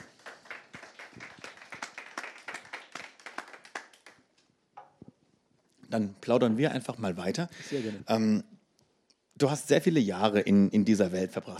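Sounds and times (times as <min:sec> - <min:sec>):
small audience clapping: 0:00.0 - 0:04.5
speech: 0:05.9 - 0:08.5, 0:09.4 - 0:11.5.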